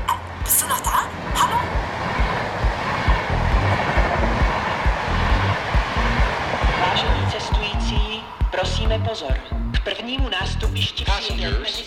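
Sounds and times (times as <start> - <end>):
train running on rails: 0.0 - 11.8.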